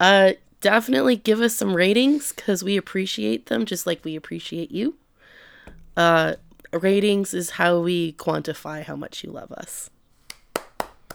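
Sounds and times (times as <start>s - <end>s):
speech: 0.0s - 5.0s, 5.7s - 9.9s
hands clapping: 10.2s - 11.1s.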